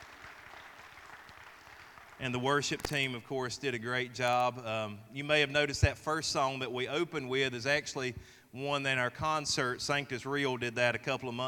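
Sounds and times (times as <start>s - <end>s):
audience applause: 0.0s - 2.2s
speech: 2.2s - 11.4s.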